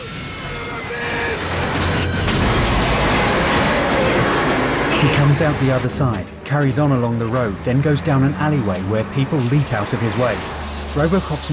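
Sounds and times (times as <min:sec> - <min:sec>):
truck smashing through a wall into a bar: 0:00.1 - 0:11.5
speech: 0:05.0 - 0:11.5.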